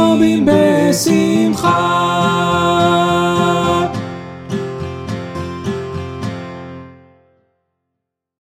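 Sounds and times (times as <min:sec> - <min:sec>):
two voices singing: 0:00.0 - 0:04.2.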